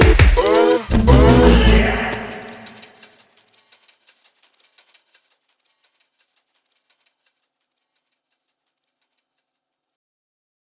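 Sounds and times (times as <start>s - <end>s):
Gachi remix music: 0.0s - 3.0s.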